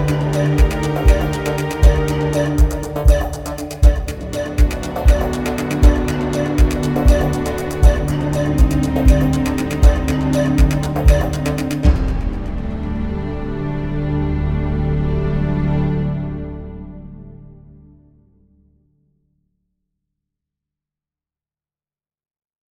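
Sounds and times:
tension music: 0.0 - 18.1.

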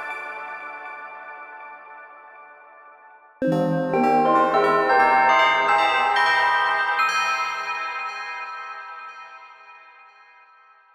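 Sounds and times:
bells ringing: 3.4 - 9.0.

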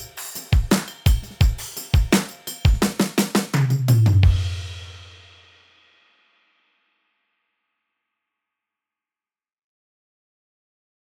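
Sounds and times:
vintage standard drum kit: 0.0 - 6.2.

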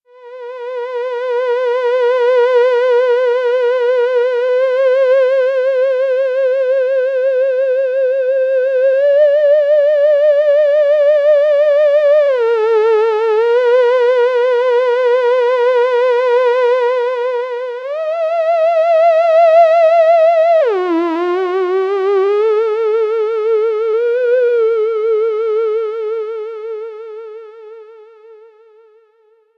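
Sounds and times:
theremin: 0.1 - 29.4.

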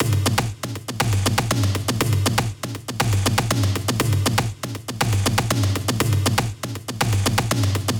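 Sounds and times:
loop main hits: 0.0 - 7.9.

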